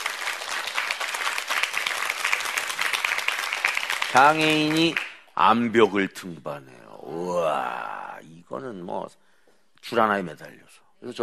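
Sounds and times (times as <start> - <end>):
audience applause: 0.0 - 5.2
speech: 4.1 - 9.2, 9.8 - 11.2.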